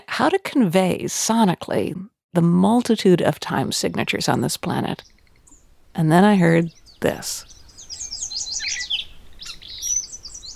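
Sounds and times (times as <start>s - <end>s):
speech: 0.2s - 5.2s, 6.0s - 7.6s
dawn chorus of birds singing at Kettle Hole State Preserve Iowa: 5.0s - 5.9s, 6.6s - 10.5s.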